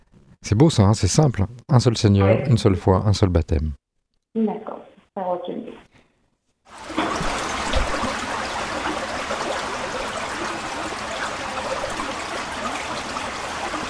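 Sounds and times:
speech: 0.4s - 3.8s, 4.4s - 5.8s
flowing stream water: 6.7s - 13.8s.

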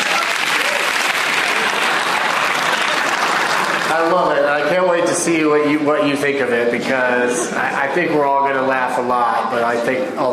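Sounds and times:
crowd applauding: 0.0s - 5.0s
speech: 4.0s - 4.4s, 5.2s - 10.3s.

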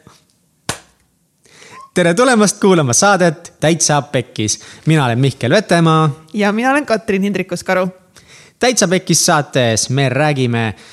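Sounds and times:
single hand clap: 0.7s - 1.0s
speech: 2.0s - 8.0s, 8.6s - 10.9s.

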